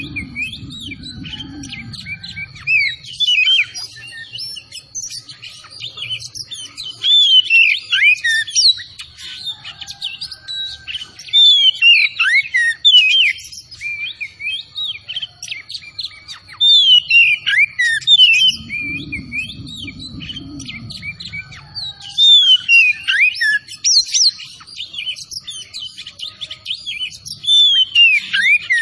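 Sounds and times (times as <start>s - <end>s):
low hum: 0.0s - 3.8s, 18.3s - 21.9s
oriental magpie-robin whistling song: 0.0s - 28.8s.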